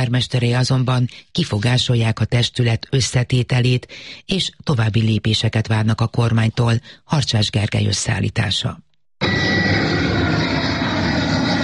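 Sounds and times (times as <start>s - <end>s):
speech: 0.0s - 8.8s
airplane flying overhead: 9.2s - 11.6s.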